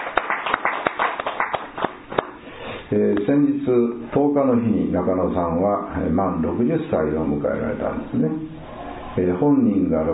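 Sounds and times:
audience applause: 0:00.0 - 0:02.3
speech: 0:02.9 - 0:08.6, 0:09.2 - 0:10.1.

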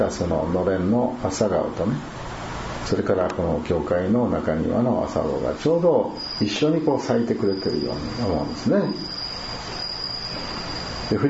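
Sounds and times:
speech: 0:00.0 - 0:02.2, 0:02.8 - 0:09.1, 0:11.1 - 0:11.2
bell cricket singing: 0:05.2 - 0:11.2.

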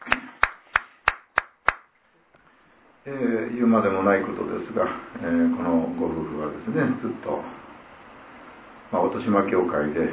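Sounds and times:
people clapping: 0:00.0 - 0:01.9
speech: 0:03.1 - 0:07.7, 0:08.9 - 0:10.1.

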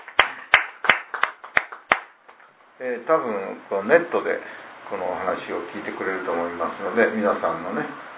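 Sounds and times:
hand claps for a birthday celebration: 0:00.0 - 0:02.5
speech: 0:02.8 - 0:08.1.

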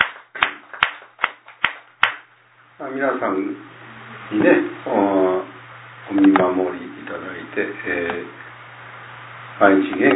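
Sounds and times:
rhythmic clapping for a child's second birthday at a Konko church gathering: 0:00.0 - 0:02.3
speech: 0:02.8 - 0:05.3, 0:06.1 - 0:08.4, 0:09.6 - 0:10.1.

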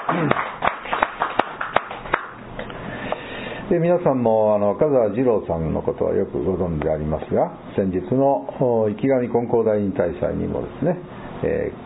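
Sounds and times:
audience clapping: 0:00.0 - 0:02.4
speech: 0:00.1 - 0:00.5, 0:03.7 - 0:11.8.

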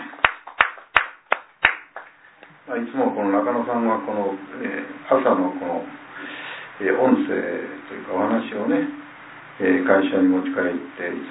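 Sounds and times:
hand claps in birthday celebration: 0:00.0 - 0:02.6
speech: 0:02.7 - 0:09.0, 0:09.6 - 0:11.2.

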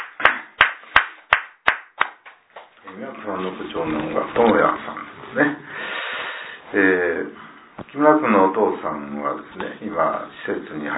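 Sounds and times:
hand claps celebrating a birthday: 0:00.0 - 0:02.7
speech: 0:02.9 - 0:05.9, 0:06.7 - 0:10.9.

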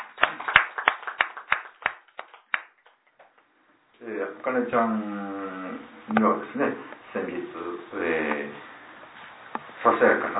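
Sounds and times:
applause for birthday wishes: 0:00.0 - 0:03.4
speech: 0:04.0 - 0:05.3, 0:06.1 - 0:08.7, 0:09.8 - 0:10.3.

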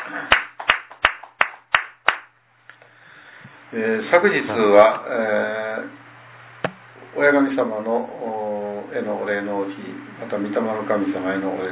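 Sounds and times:
hand claps: 0:00.0 - 0:02.3
speech: 0:03.7 - 0:06.0, 0:07.2 - 0:11.7.

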